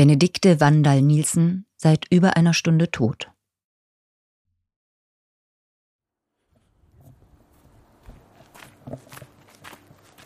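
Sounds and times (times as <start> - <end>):
speech: 0.0 - 3.3
footsteps of someone walking along a path: 6.5 - 10.2.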